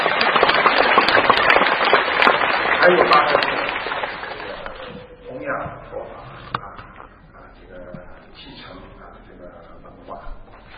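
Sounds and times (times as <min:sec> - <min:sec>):
audience at a Buddhist teaching gathering clapping: 0:00.0 - 0:05.1
speech: 0:02.8 - 0:03.5.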